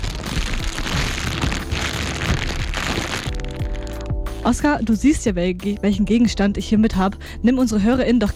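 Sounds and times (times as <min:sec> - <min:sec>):
plastic bag rustling: 0:00.0 - 0:04.6
soft low thumps: 0:00.0 - 0:05.5
speech: 0:04.5 - 0:08.3.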